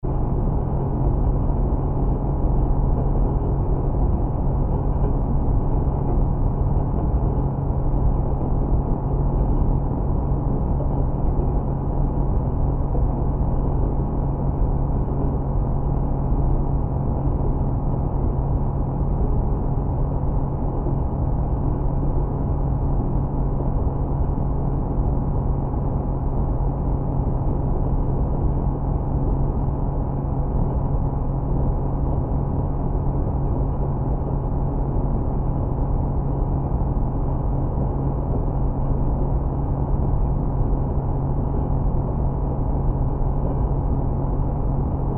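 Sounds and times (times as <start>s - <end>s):
electromagnetic transmission line hum: 0.0s - 45.1s.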